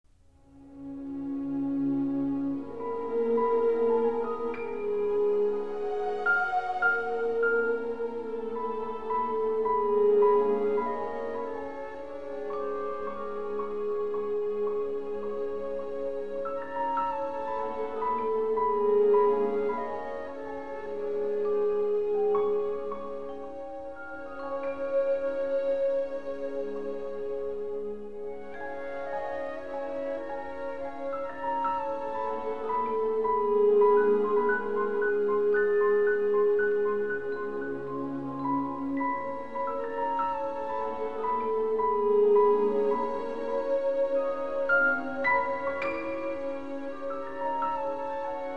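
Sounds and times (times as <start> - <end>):
classical music: 0.1 - 48.5.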